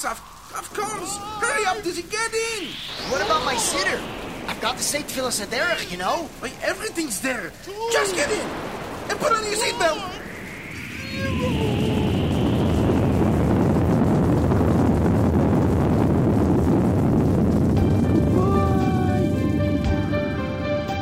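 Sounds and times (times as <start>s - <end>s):
speech: 0.0s - 10.2s
thin whistling tones: 0.0s - 13.2s
roaring satellite launch blast sound effect: 0.0s - 20.2s.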